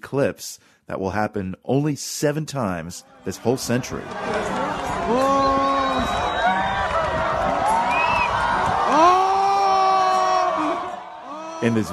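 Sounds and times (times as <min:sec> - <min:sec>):
speech: 0:00.0 - 0:06.2, 0:11.6 - 0:11.9
large beach crowd cheering and whooping at an eclipse: 0:03.4 - 0:11.9.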